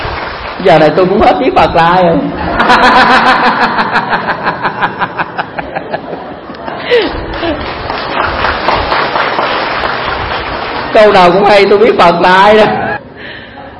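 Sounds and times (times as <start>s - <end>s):
audience applause: 0.0s - 0.7s, 6.8s - 11.5s
speech: 0.6s - 6.0s, 11.0s - 12.9s
laughter: 2.4s - 9.2s.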